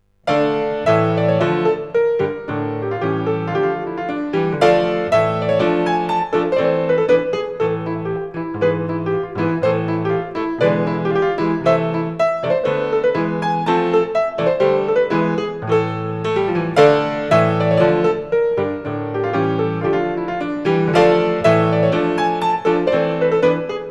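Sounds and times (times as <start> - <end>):
piano: 0.0 - 23.8.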